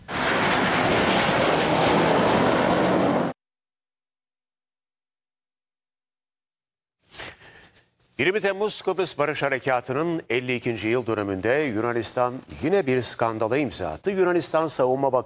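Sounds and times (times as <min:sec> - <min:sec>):
faint burst: 0:00.0 - 0:03.4
military jet roar in an aerobatic display: 0:00.0 - 0:03.4
speech: 0:08.2 - 0:15.2.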